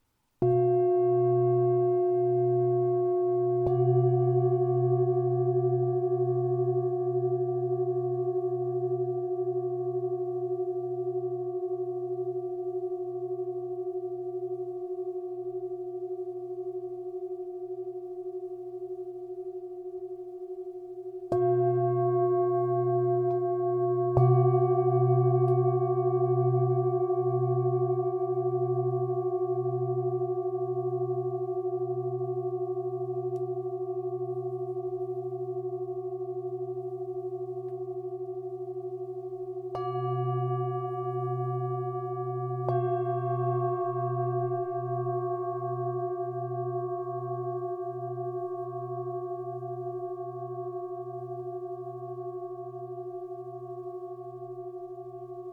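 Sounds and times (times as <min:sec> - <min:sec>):
bowls: 0:00.4 - 0:55.5.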